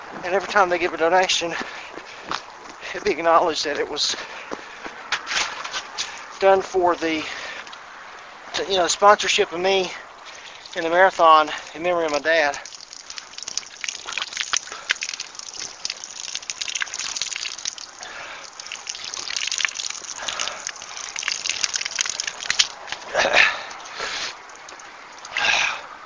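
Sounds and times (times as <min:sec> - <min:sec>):
speech: 0:00.2 - 0:01.8, 0:02.9 - 0:04.4, 0:06.4 - 0:07.4, 0:08.6 - 0:10.0, 0:10.8 - 0:12.6
cold water pouring: 0:08.8 - 0:25.9.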